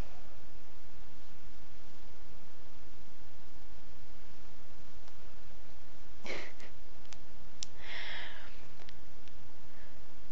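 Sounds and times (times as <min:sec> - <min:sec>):
steady hiss: 0:00.0 - 0:10.3
soft inhale and slow calm exhale: 0:07.8 - 0:08.6.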